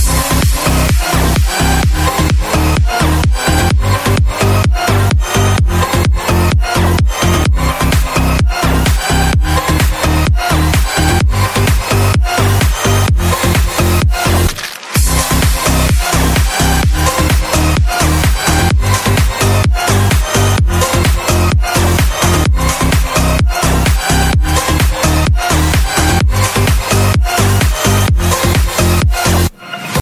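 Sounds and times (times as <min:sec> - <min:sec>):
EDM remix: 0:00.0 - 0:29.9.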